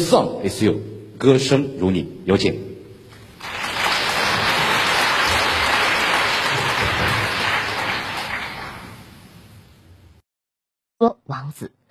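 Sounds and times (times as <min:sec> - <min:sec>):
speech: 0:00.0 - 0:02.7, 0:11.3 - 0:11.8
audience applause at a concert performance: 0:03.3 - 0:09.2.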